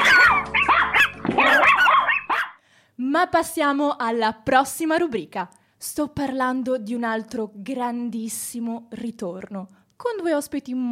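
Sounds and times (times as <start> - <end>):
small chihuahuas barking with shrill yaps: 0.0 - 2.6
speech: 3.2 - 10.9.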